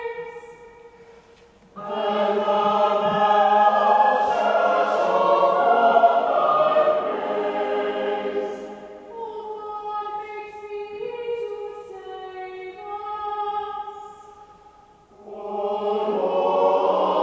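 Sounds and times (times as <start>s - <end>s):
choir singing Mixolydian preces at evensong: 1.7s - 10.3s, 15.1s - 17.2s.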